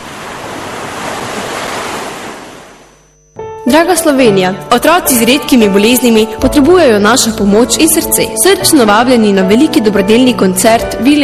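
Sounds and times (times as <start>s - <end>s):
sea waves crashing: 0.0s - 2.9s
speech: 3.6s - 11.2s.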